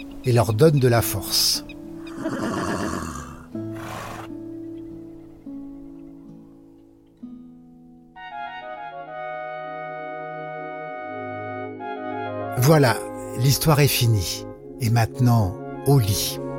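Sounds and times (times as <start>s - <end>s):
speech: 0.2s - 2.4s, 12.7s - 16.4s
horse neighing: 2.0s - 4.4s.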